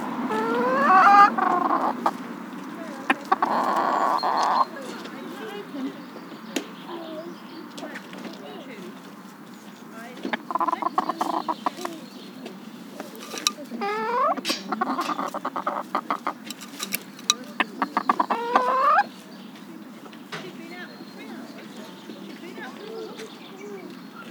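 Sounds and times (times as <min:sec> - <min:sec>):
chicken squawking and cackling: 0:00.2 - 0:04.7, 0:10.3 - 0:12.1, 0:13.1 - 0:16.4, 0:17.6 - 0:19.1.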